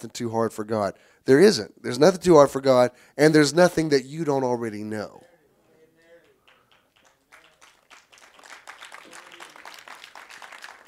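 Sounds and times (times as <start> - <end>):
speech: 0.0 - 5.3
audience applause: 6.2 - 10.8.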